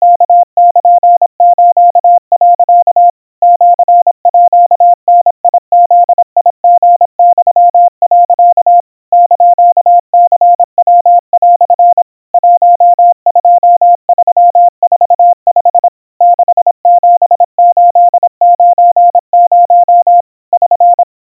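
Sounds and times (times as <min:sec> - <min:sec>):
Morse code tones at 700 Hz and 90 cpm: 0:00.0 - 0:21.2.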